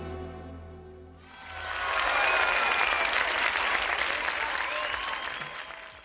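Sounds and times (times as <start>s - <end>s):
audience applause at end of song: 1.3s - 6.0s.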